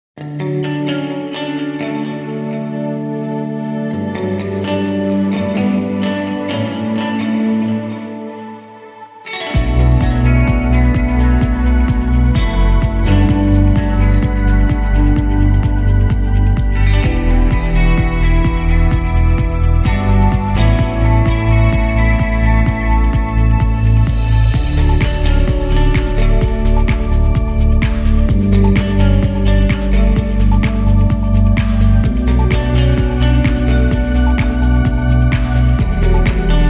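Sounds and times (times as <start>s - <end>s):
underscore music: 0.2s - 36.6s.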